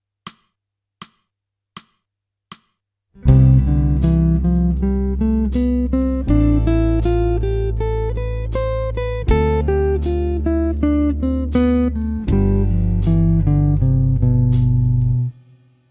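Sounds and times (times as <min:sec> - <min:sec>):
jazz music: 0:03.3 - 0:15.2.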